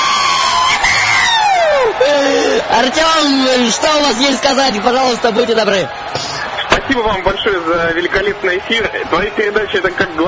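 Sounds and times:
studio audience high yells: 0.0 - 6.7
studio audience crowd roar: 0.0 - 10.2
speech: 2.0 - 6.2, 6.9 - 10.2.

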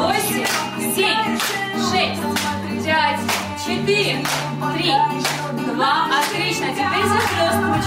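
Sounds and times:
hands clapping in rhythm: 0.2 - 7.7.

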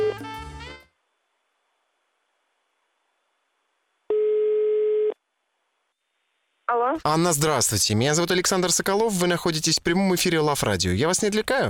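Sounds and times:
telephone ringback tone: 0.0 - 0.2, 4.1 - 5.2
speech: 6.8 - 11.6.

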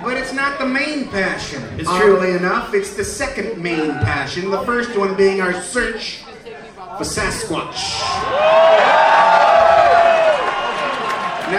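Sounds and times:
speech: 0.3 - 6.3, 7.0 - 9.4
audience cheering: 7.8 - 11.5.

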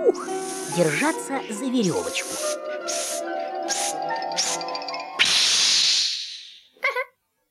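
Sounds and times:
balloon being inflated: 0.0 - 1.3, 1.9 - 6.6
speech: 0.1 - 3.4.

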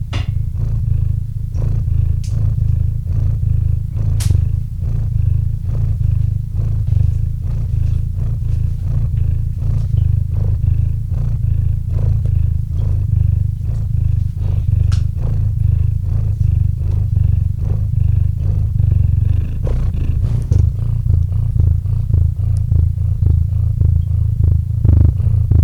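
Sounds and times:
cat purring: 0.0 - 25.6.

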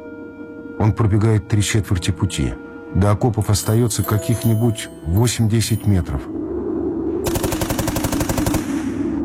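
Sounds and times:
speech: 0.8 - 6.4
machine gun fire: 7.3 - 9.1.

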